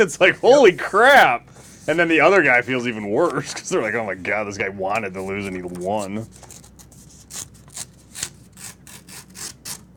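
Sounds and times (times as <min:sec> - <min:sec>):
speech: 0:00.0 - 0:06.6
paper ripping: 0:04.9 - 0:09.9.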